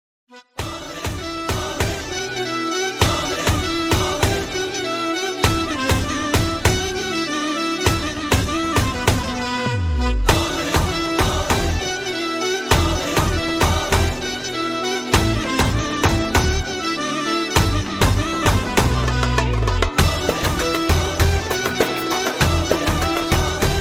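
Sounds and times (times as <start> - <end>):
oriental solo music: 0.7 - 23.7.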